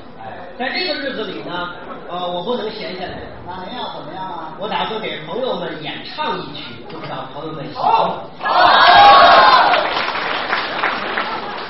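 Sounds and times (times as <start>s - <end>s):
speech: 0.6s - 9.0s
audience applause: 8.6s - 11.6s.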